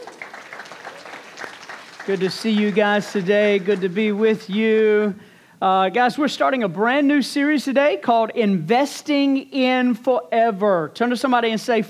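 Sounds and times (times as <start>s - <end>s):
audience applause: 0.0s - 5.0s
speech: 2.1s - 11.8s.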